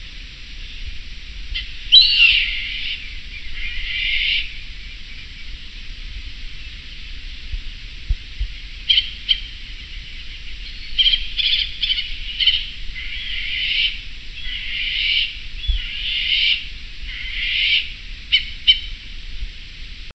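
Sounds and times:
low hum: 0.0s - 20.1s
harsh bird calls: 1.5s - 5.6s, 8.8s - 19.0s.

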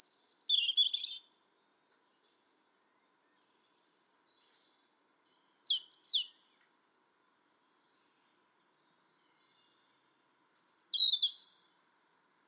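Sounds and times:
European robin song: 0.0s - 12.4s.

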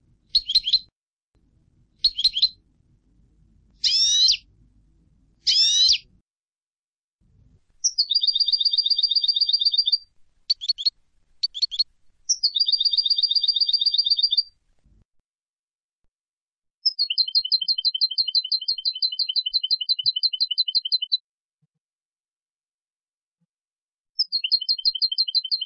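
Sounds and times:
European goldfinch Carduelis carduelis singing with twittering bursts and trills: 0.3s - 0.9s, 2.0s - 2.6s, 3.8s - 4.5s, 5.4s - 6.1s, 7.8s - 14.6s, 16.8s - 21.2s, 24.2s - 25.6s.

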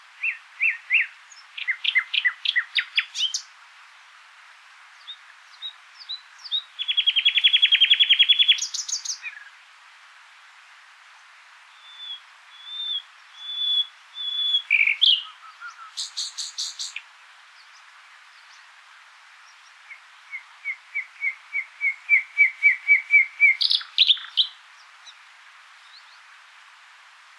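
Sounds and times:
common nightingale singing: 0.1s - 3.5s, 5.0s - 9.6s, 11.1s - 26.4s.

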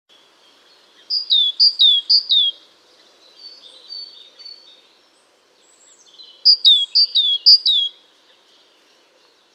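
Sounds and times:
great tit calling: 1.0s - 4.8s, 6.3s - 8.0s.

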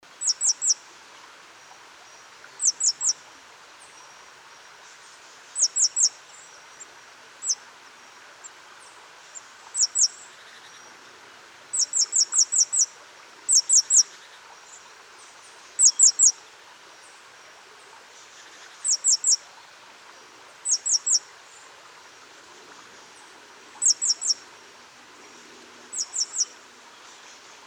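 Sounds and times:
background hiss: 0.0s - 27.6s
great tit calls: 5.5s - 6.6s, 9.4s - 10.9s, 11.7s - 12.9s, 13.5s - 14.4s, 15.8s - 16.4s, 18.4s - 19.4s, 20.6s - 21.2s, 23.8s - 24.4s, 25.9s - 27.4s.

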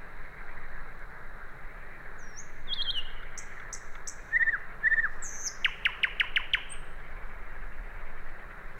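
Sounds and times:
common nightingale song: 1.7s - 7.1s.

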